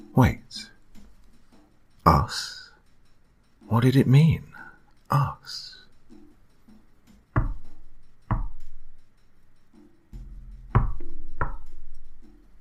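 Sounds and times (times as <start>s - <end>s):
speech: 0.2s - 0.7s, 2.0s - 2.6s, 3.7s - 4.5s, 5.1s - 5.8s
heavy knocking on a back door: 7.3s - 8.8s, 10.2s - 11.9s.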